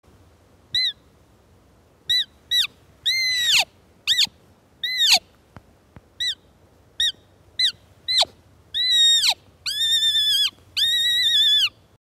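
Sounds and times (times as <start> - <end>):
fawn distress call: 2.1 - 5.2, 7.0 - 11.8.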